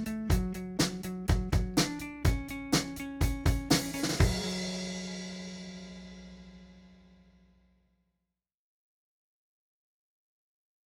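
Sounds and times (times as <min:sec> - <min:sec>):
guitar: 0:00.0 - 0:06.8.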